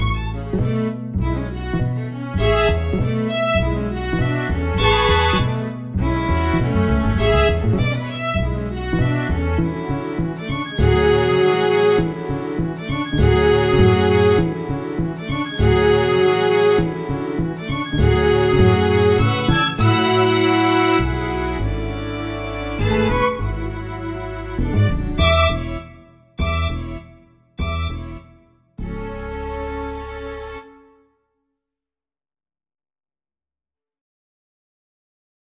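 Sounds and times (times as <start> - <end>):
jazz music: 0.0 - 27.0.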